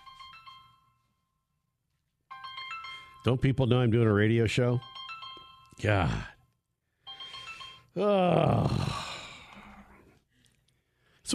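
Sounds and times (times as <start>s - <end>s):
phone ringing: 0.0s - 1.3s, 2.3s - 6.3s, 6.9s - 8.0s
speech: 3.2s - 5.0s, 5.8s - 6.3s, 8.0s - 9.0s.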